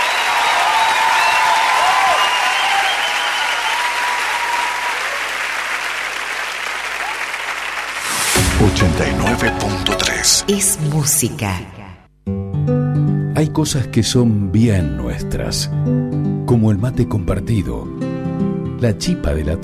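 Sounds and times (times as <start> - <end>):
faint cheers: 0.0 - 5.5, 6.8 - 7.4
large crowd applauding: 0.0 - 10.2
speech: 8.6 - 12.0, 13.4 - 19.6.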